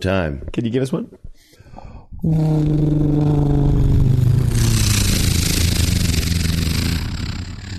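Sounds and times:
speech: 0.0s - 1.5s, 2.2s - 4.2s
vocal imitation of World War II Hurricane fighter flying past: 2.2s - 7.7s.

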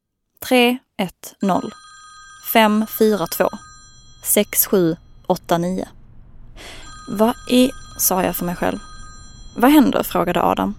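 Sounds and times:
speech: 0.5s - 1.9s, 2.5s - 6.0s, 6.6s - 8.9s, 9.6s - 10.7s
mobile phone ringing: 1.4s - 5.5s, 6.6s - 10.5s.

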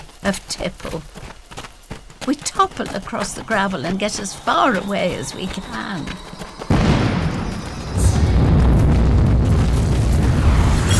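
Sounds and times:
speech: 0.2s - 1.4s, 2.3s - 6.4s
heavy explosion: 6.7s - 10.9s.

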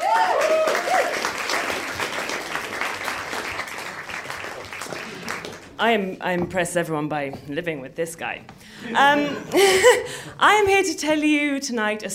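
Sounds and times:
audience applause: 0.0s - 5.8s
speech: 5.8s - 12.1s
laughter: 8.8s - 10.3s.

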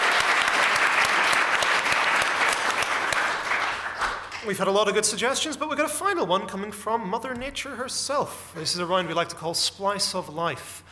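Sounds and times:
audience applause: 0.0s - 4.5s
speech: 4.4s - 10.9s.

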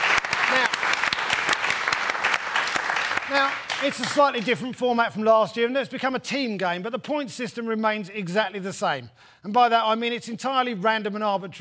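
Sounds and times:
studio audience applauding Tottenham Spurs fans on a comedy panel show: 0.0s - 4.6s
speech: 3.3s - 11.5s.

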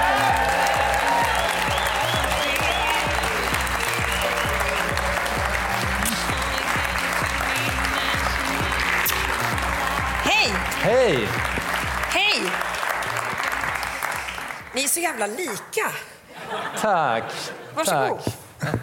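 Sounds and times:
audience applause: 0.0s - 15.0s
speech: 15.2s - 16.1s, 16.8s - 18.8s
laughter: 16.3s - 17.8s.

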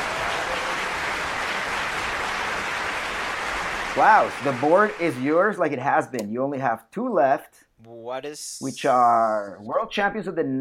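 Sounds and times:
audience applause at a cycling trivia game show: 0.0s - 5.5s
speech: 4.0s - 10.5s.

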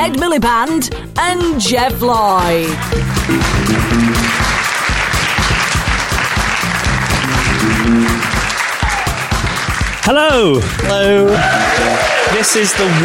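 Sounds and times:
speech: 0.0s - 4.7s, 10.1s - 13.0s
live audience clapping at Abbey Road Studio: 2.7s - 13.0s
audience whooping and cheering: 3.3s - 9.9s, 10.9s - 13.0s.

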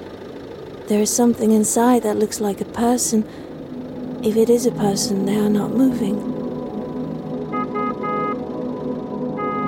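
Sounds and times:
low rumble of engine and traffic: 0.0s - 9.6s
speech: 0.9s - 3.5s, 4.2s - 6.4s
car horn honking: 6.2s - 9.6s.

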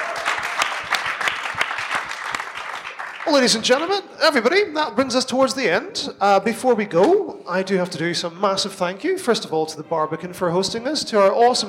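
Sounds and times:
audience applause: 0.0s - 3.8s
speech: 3.3s - 11.6s.

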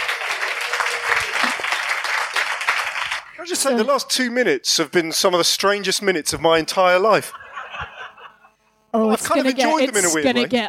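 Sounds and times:
live audience applause welcoming a guest on stage at an evening show: 0.0s - 3.7s
speech: 3.4s - 7.4s, 8.9s - 10.6s
laughter: 7.1s - 8.6s.

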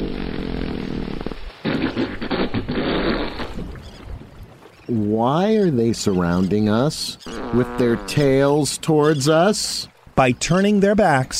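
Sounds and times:
humpback whales farting back and forth: 0.0s - 4.4s, 7.2s - 8.6s
speech: 4.9s - 11.3s.

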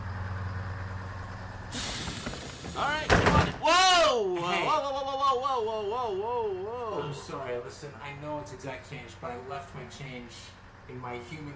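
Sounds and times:
large bus engine rumbling: 0.0s - 11.5s
bus air brakes hissing: 1.7s - 3.6s
speech: 2.8s - 11.5s.

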